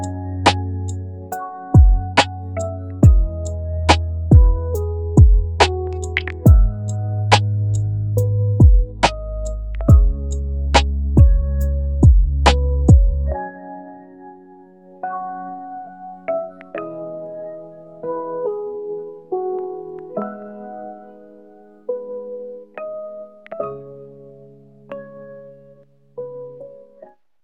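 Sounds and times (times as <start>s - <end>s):
rainy lofi music: 1.8s - 13.3s.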